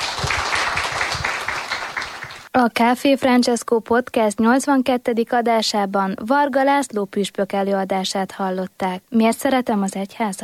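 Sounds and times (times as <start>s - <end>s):
audience applause: 0.0s - 2.5s
speech: 2.6s - 10.4s.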